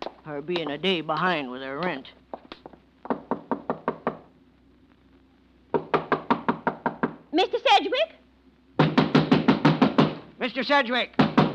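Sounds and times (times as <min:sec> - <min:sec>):
speech: 0:00.2 - 0:02.3, 0:07.3 - 0:08.2, 0:10.4 - 0:11.2
knuckles knocking on a door: 0:03.0 - 0:04.3, 0:05.7 - 0:07.2, 0:08.8 - 0:10.2, 0:11.2 - 0:11.5.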